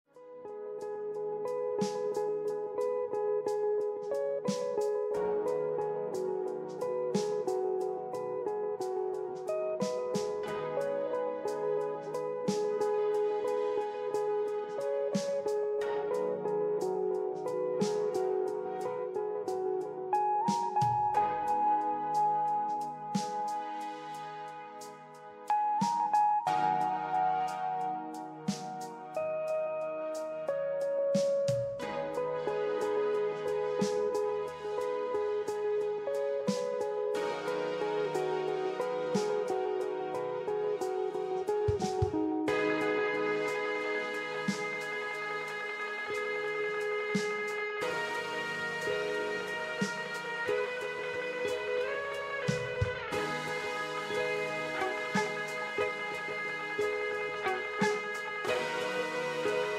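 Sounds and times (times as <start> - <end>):
music: 0.0 - 59.7.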